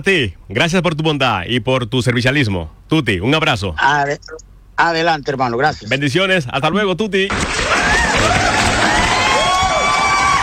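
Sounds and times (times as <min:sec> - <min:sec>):
speech: 0:00.0 - 0:07.8
cheering: 0:07.5 - 0:10.4
applause: 0:07.6 - 0:10.4.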